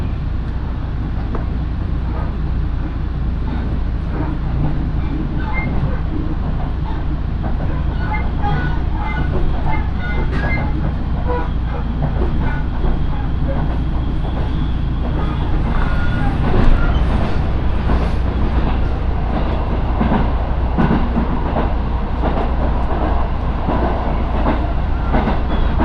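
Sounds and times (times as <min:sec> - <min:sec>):
Minobu Line local train rumbling from Shibakawa to Minobu: 0:00.0 - 0:25.8
train rattles and clacks: 0:01.2 - 0:25.8
train wheel squeals: 0:05.0 - 0:17.4, 0:24.6 - 0:25.8.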